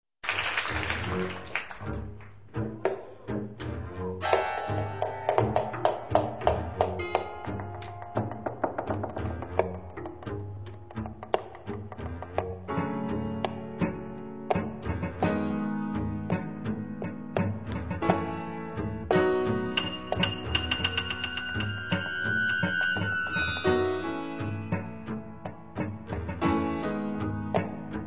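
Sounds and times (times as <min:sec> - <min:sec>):
tango music: 0:00.7 - 0:28.0.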